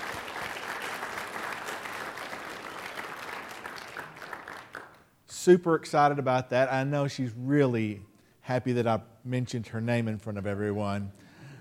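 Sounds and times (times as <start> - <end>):
church congregation clapping to welcome a newly baptized member: 0.0 - 5.1
speech: 5.4 - 11.2.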